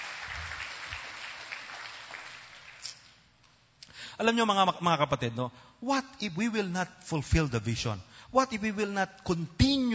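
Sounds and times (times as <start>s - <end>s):
church congregation clapping in praise of the Lord: 0.0s - 3.2s
speech: 4.2s - 9.9s.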